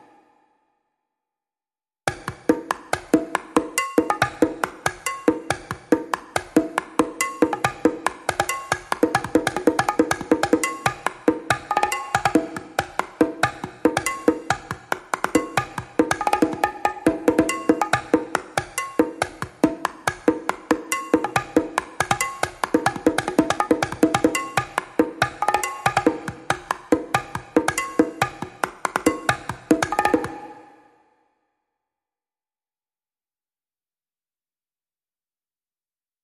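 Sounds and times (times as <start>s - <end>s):
light percussion: 2.1s - 30.8s.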